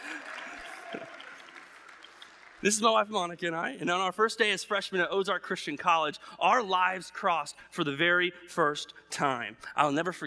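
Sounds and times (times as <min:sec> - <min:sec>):
applause: 0:00.0 - 0:03.0
speech: 0:02.6 - 0:10.2.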